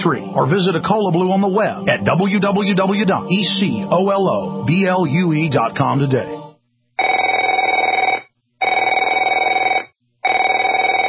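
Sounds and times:
speech: 0.0s - 6.4s
telephone ringing: 7.0s - 11.0s.

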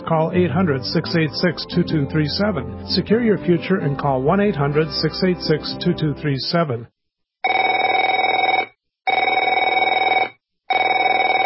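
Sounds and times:
speech: 0.1s - 7.0s
telephone ringing: 7.4s - 11.4s.

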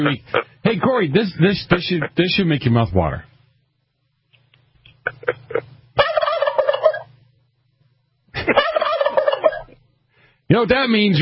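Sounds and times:
speech: 0.0s - 3.3s, 10.5s - 11.2s
turkey clucking: 5.0s - 7.1s, 8.4s - 9.8s.

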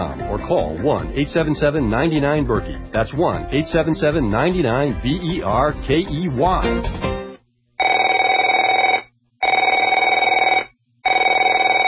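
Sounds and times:
speech: 0.0s - 7.2s
telephone ringing: 7.8s - 11.8s.

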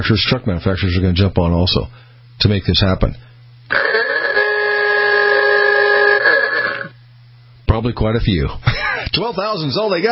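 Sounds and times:
speech: 0.0s - 3.9s, 7.8s - 10.0s
ahooga car horn: 3.7s - 6.9s.

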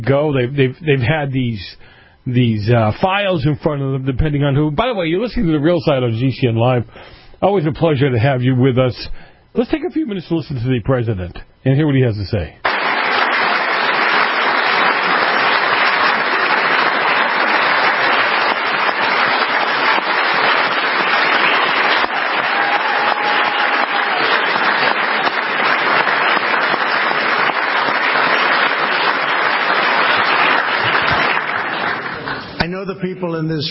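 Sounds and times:
speech: 0.0s - 12.6s, 33.4s - 33.7s
large crowd standing applause: 12.6s - 32.7s.

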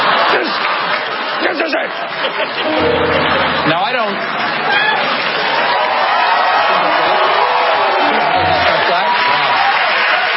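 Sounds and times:
audience applause: 0.0s - 10.3s
speech: 1.9s - 3.2s
audience cheering and whoops: 4.4s - 10.3s.

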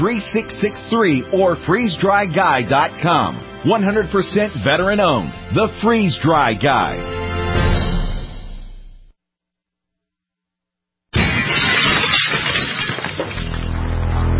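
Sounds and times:
speech: 0.0s - 7.2s
glass smashing in a home break-in: 11.2s - 14.2s
rattling, tinkling glass shards and debris: 11.2s - 14.2s.

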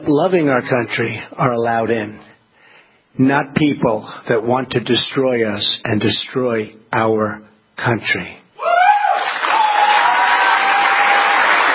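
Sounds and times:
speech: 0.1s - 2.3s, 3.2s - 8.4s
military audience at CENTCOM applauding a speech: 9.2s - 11.7s.

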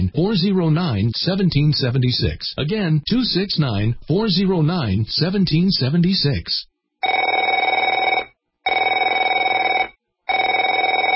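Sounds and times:
speech: 0.1s - 6.7s
telephone ringing: 7.0s - 11.1s.

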